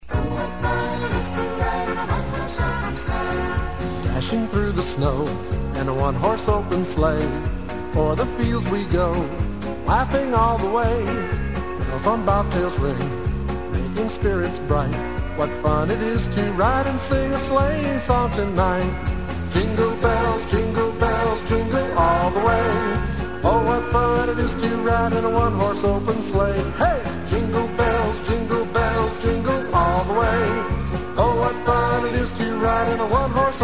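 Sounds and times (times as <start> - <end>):
Christmas song: 0.0 - 33.6.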